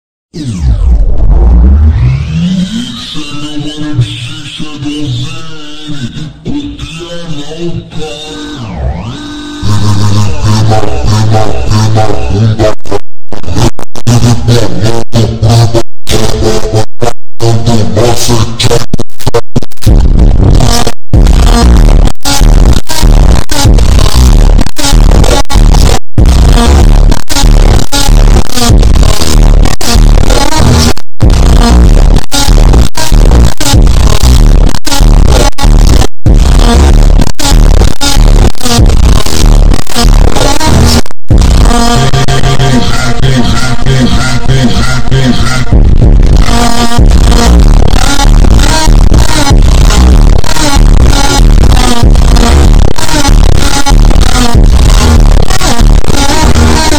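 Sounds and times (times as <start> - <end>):
montagem funk track with superbass: 0.3 - 56.9.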